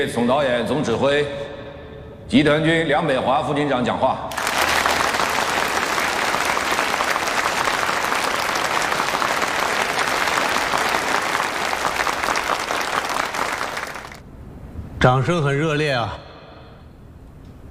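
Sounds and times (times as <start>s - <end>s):
speech: 0.0s - 1.6s, 2.3s - 4.4s, 15.0s - 16.2s
applause from a large crowd: 4.3s - 14.2s.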